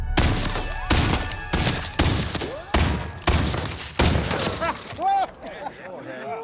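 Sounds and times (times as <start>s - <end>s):
rapid gunfire from a Confederate sharpshooter in a film: 0.2s - 4.8s
laughter: 4.2s - 6.4s.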